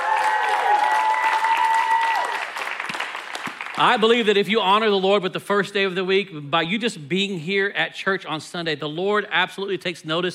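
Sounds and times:
church congregation applauding on a Sunday morning: 0.0s - 4.2s
speech: 3.8s - 10.3s.

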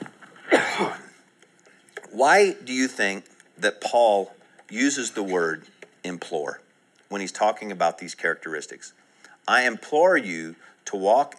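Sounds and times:
person coughing: 0.4s - 1.2s
speech: 2.2s - 11.3s.

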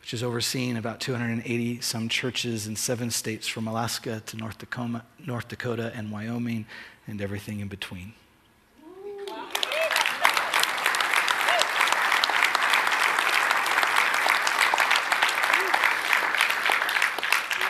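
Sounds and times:
speech: 0.1s - 8.2s
audience applause: 9.2s - 17.6s.

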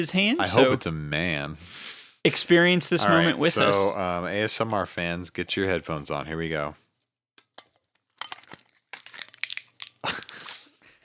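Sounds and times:
speech: 0.0s - 6.8s
cellophane shrink wrap crinkling for ASMR: 7.5s - 10.4s.

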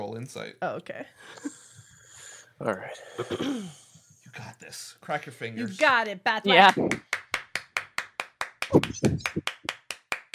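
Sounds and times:
speech: 0.0s - 1.6s, 2.6s - 7.1s, 8.7s - 9.6s
hand clapping: 6.6s - 10.3s.

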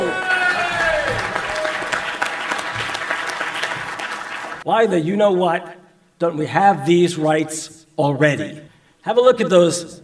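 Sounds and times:
crowd cheering and applauding at an event in Chicago: 0.0s - 4.6s
speech: 4.7s - 10.0s.

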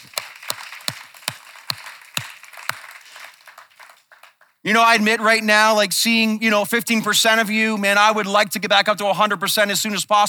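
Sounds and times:
audience clapping: 0.0s - 4.6s
speech: 4.6s - 10.2s.

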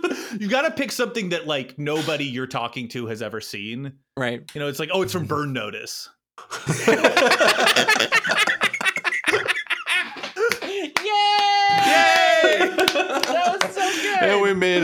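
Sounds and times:
speech: 0.4s - 8.6s, 12.4s - 14.8s
laughter: 6.4s - 14.8s
applause: 10.4s - 14.0s.

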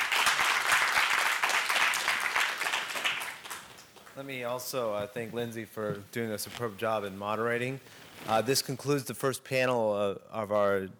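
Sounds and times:
audience applause for the panelists: 0.0s - 4.1s
speech: 4.2s - 10.9s.

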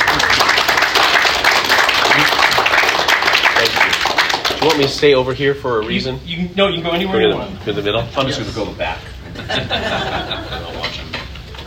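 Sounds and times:
crowd applause: 0.0s - 5.0s
speech: 4.6s - 10.8s
laughter: 9.2s - 11.2s.

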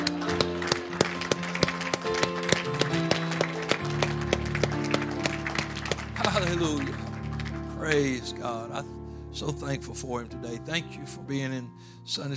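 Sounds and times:
audience clapping: 0.0s - 8.5s
speech: 6.5s - 7.0s, 7.8s - 12.3s.

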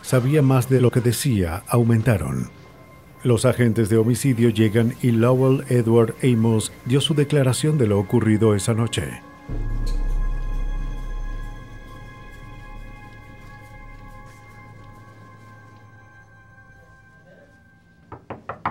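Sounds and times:
sustained tones: 0.0s - 18.2s
speech: 0.1s - 2.6s, 3.2s - 10.0s
knocking on a door: 18.1s - 18.6s.

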